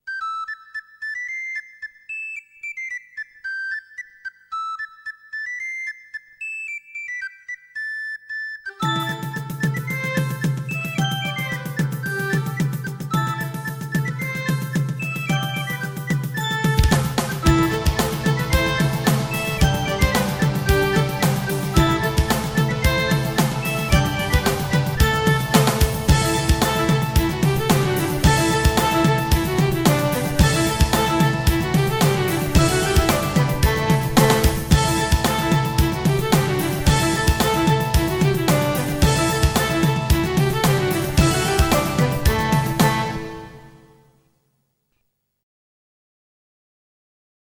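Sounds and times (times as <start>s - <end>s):
Irish dance music: 8.8s - 43.9s.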